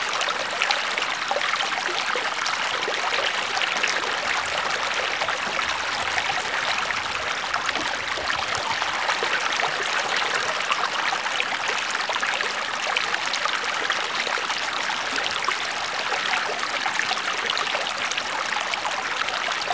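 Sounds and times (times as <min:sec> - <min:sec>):
stream water at medium flow: 0:00.0 - 0:19.7.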